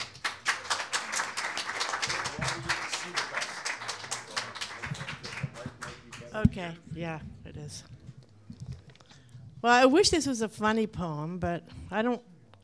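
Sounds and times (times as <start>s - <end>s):
audience applause welcoming a poet: 0.0s - 6.3s
speech: 6.4s - 8.0s, 9.6s - 12.6s.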